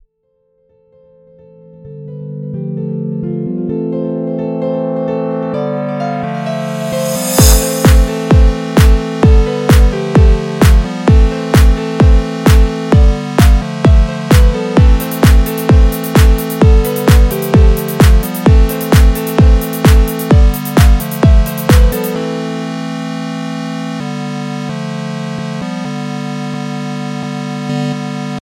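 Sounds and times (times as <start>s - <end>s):
piano dance music: 1.7s - 28.4s.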